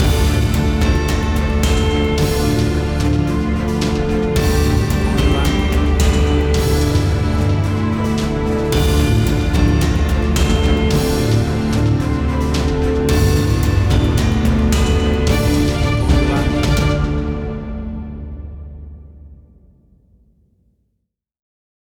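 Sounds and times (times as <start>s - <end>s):
adventure action movie soundtrack music: 0.0s - 19.9s.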